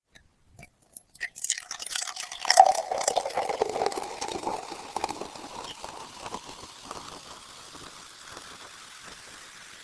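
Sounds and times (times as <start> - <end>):
bottle: 0.1 - 8.6.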